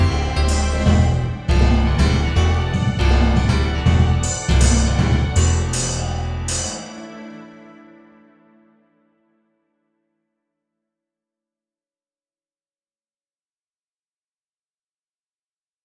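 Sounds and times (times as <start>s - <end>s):
metal grate in a trash room: 0.0s - 6.8s.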